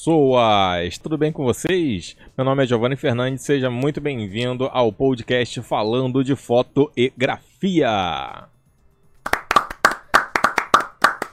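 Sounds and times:
speech: 0.0s - 8.5s
applause: 9.2s - 11.3s.

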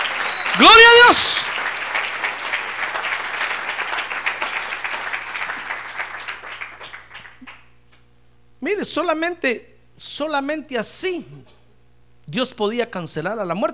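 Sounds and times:
audience applause: 0.0s - 7.7s
speech: 0.6s - 1.7s, 8.9s - 11.5s, 12.3s - 13.7s.

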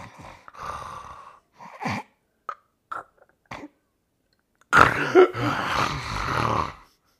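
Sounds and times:
person imitating sleep apnea breathing with snorting, rasping breaths: 0.0s - 2.2s, 4.8s - 7.1s.

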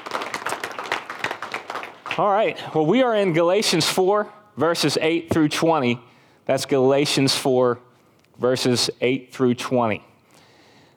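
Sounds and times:
audience applause: 0.0s - 2.4s
speech: 2.2s - 7.8s, 8.4s - 10.1s.

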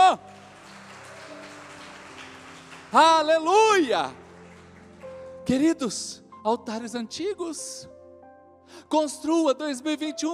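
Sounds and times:
audience applauding loudly: 0.0s - 5.8s
speech: 2.9s - 4.2s, 5.5s - 8.0s, 8.7s - 10.3s.

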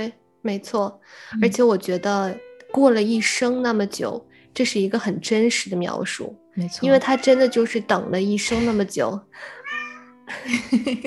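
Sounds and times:
speech: 0.0s - 11.0s
cat meowing: 6.8s - 7.8s, 9.4s - 10.2s
laughter: 10.3s - 11.0s.

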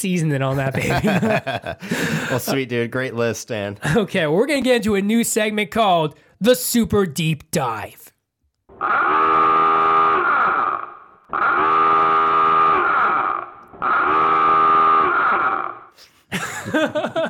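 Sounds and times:
speech: 0.0s - 8.1s
laughter: 0.6s - 2.9s, 16.3s - 17.2s
submarine dive alarm blaring: 8.7s - 16.0s.

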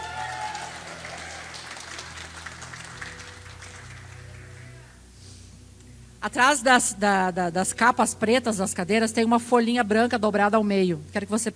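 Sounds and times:
audience applauding: 0.0s - 4.9s
speech: 6.2s - 11.5s.

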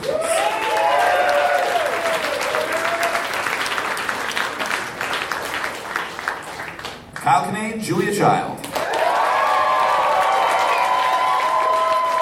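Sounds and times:
whistles and cheers: 0.0s - 3.3s, 8.9s - 12.2s
audience applause: 0.0s - 7.2s, 8.7s - 12.2s
speech: 7.4s - 8.6s.

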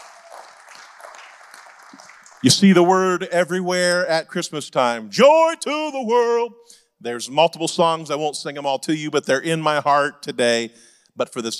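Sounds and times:
audience clapping: 0.0s - 3.1s
speech: 2.4s - 11.5s.

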